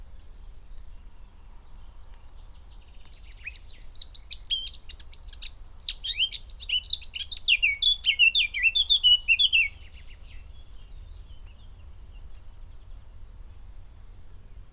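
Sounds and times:
Eurasian blackcap singing: 2.2 - 13.4.

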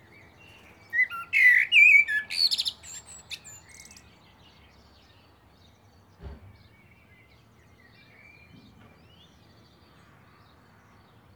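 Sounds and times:
common blackbird (Turdus merula) song: 0.0 - 11.3.

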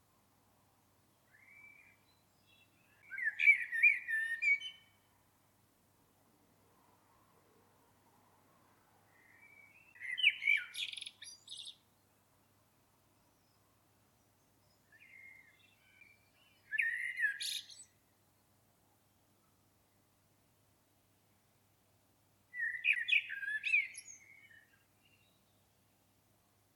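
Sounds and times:
common blackbird singing: 1.3 - 5.0, 9.2 - 12.0, 14.6 - 18.0, 22.5 - 25.5.

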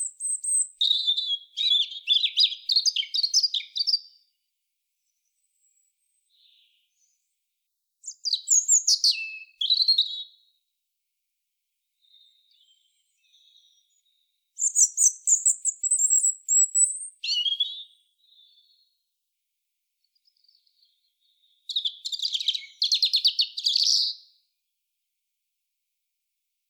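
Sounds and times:
European robin song: 0.0 - 4.4, 5.0 - 7.4, 8.0 - 10.6, 11.8 - 19.1, 20.0 - 24.6.

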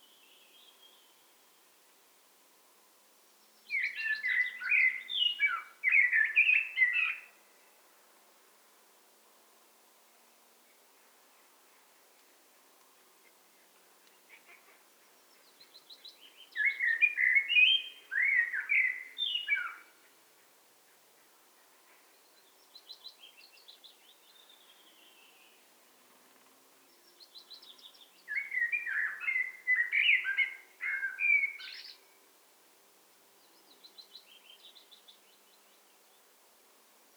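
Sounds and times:
Eurasian blackbird fluting warbled song: 3.3 - 7.8, 13.0 - 32.3, 33.4 - 36.4.

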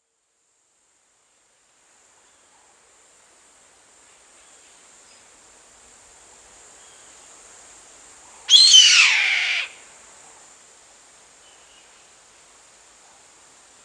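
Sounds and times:
bird screeching: 8.5 - 9.7.

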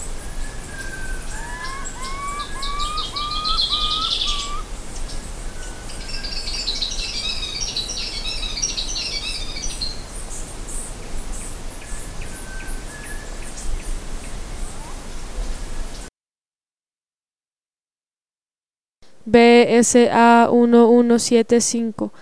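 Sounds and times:
bird whistles and chattering: 0.4 - 4.6
speech: 19.3 - 22.1.

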